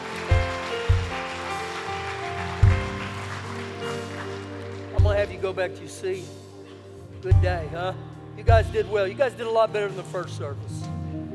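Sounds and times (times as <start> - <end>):
audience clapping: 0.0 - 5.8
speech: 5.2 - 6.4, 7.2 - 10.8.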